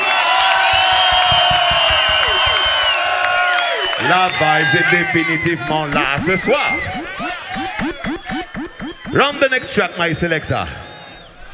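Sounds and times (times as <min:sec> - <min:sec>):
steady applause: 0:00.0 - 0:05.6
loud crowd cheering and whooping: 0:00.0 - 0:11.5
speech: 0:04.1 - 0:07.0, 0:09.1 - 0:10.8.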